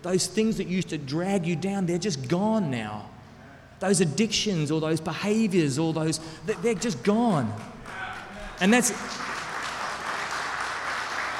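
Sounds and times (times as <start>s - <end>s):
speech: 0.0s - 3.1s, 3.8s - 7.8s, 8.6s - 9.3s
audience applause during a talk: 7.8s - 11.3s.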